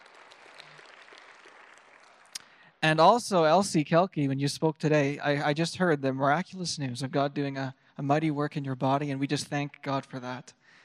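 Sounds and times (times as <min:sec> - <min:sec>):
crowd clapping: 0:00.0 - 0:02.6
speech: 0:02.8 - 0:10.6.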